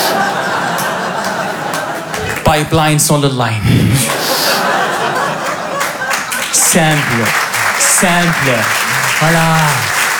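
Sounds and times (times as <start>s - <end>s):
audience applause: 0.0s - 2.6s, 4.1s - 10.1s
laughter: 0.0s - 2.8s, 3.8s - 10.1s
speech: 2.5s - 4.7s, 6.5s - 7.4s, 8.0s - 10.0s.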